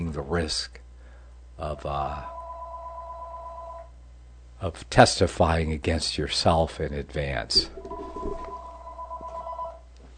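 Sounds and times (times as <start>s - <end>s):
speech: 0.2s - 0.8s, 1.6s - 2.4s, 4.6s - 8.5s
telephone ringing with an electronic trill: 2.3s - 3.9s, 7.6s - 9.8s.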